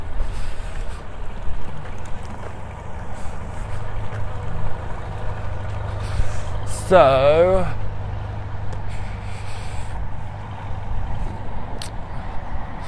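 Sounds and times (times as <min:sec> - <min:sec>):
boat engines rumbling: 0:00.0 - 0:12.8
water churning and splashing: 0:00.0 - 0:12.8
speech: 0:06.9 - 0:07.8.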